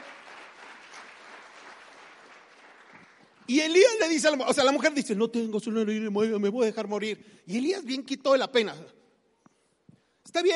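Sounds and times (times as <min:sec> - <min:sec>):
crowd applause: 0:00.0 - 0:03.5
speech: 0:03.5 - 0:09.0, 0:10.3 - 0:10.5.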